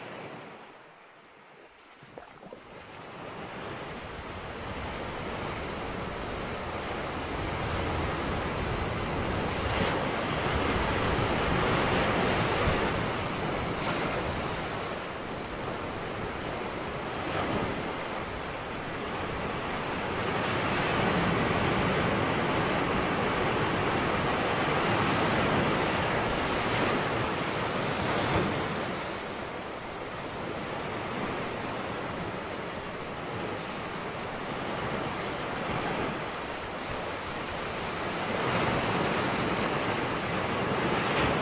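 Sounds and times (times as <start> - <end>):
ocean waves on tropical beaches: 0.0 - 41.4.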